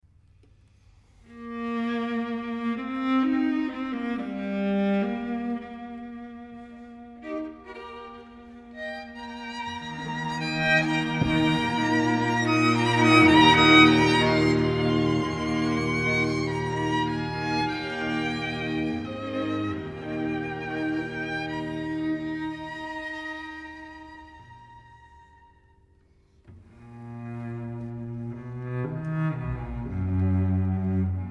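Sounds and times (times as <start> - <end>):
string quintet playing: 1.3 - 25.8, 26.6 - 31.2.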